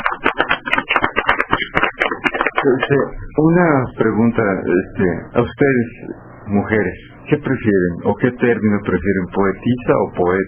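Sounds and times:
audience applause after a poem: 0.0 - 3.0
speech: 2.6 - 10.4.

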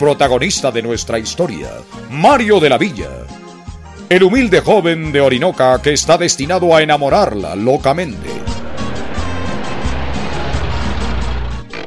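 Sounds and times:
speech: 0.0 - 3.4, 4.1 - 8.4
low road noise: 8.0 - 11.8
car engine pulling up and stopping: 8.1 - 11.8.

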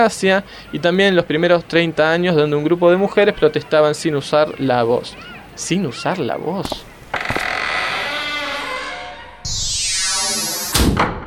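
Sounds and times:
speech: 0.0 - 7.3
rusty door creaking open: 7.1 - 9.5.

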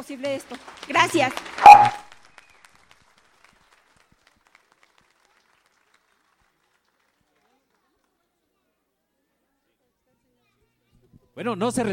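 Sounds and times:
speech: 0.0 - 2.0, 11.4 - 11.9
audience applause: 0.4 - 7.4.

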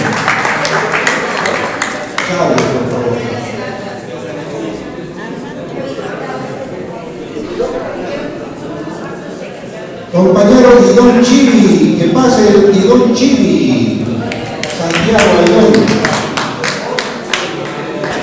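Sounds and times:
audience applause: 0.0 - 2.3, 14.3 - 18.2
crowd chatter: 0.0 - 18.2
speech: 11.0 - 14.0.

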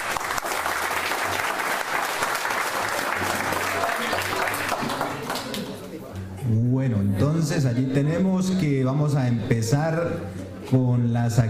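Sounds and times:
audience applause: 0.0 - 5.8
speech: 7.4 - 11.4.

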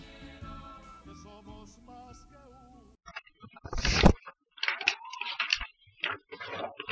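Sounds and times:
paper pages rustling: 3.7 - 6.9.

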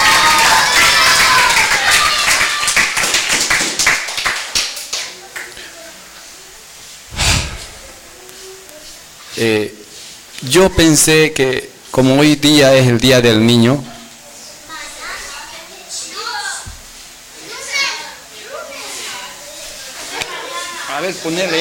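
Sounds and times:
applause: 0.0 - 5.6
speech: 9.4 - 9.8, 10.5 - 13.9, 21.1 - 21.5.

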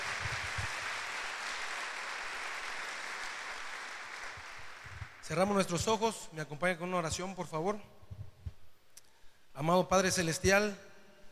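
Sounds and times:
audience applause: 0.0 - 5.3
speech: 5.3 - 8.0, 9.6 - 10.9.

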